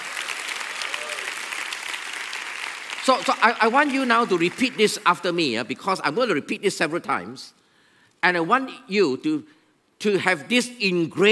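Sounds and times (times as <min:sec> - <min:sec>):
audience applause: 0:00.0 - 0:05.0
speech: 0:03.1 - 0:07.6, 0:08.2 - 0:11.3.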